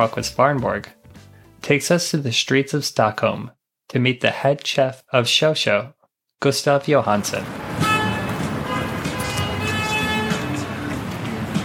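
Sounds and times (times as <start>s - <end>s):
speech: 0.0s - 1.0s, 1.6s - 7.7s
traffic noise of central Stockholm: 7.2s - 11.6s.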